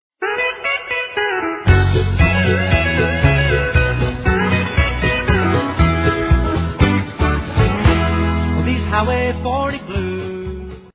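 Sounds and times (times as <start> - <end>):
blues music: 0.2 - 10.9.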